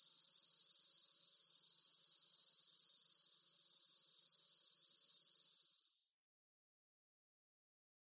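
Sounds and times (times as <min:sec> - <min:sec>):
cicadas in Montana: 0:00.0 - 0:06.2.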